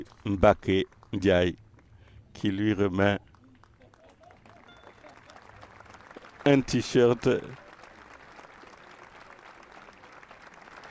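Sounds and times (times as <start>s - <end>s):
speech: 0.0s - 1.6s, 2.4s - 3.3s, 6.4s - 7.6s
audience applause: 3.3s - 10.9s.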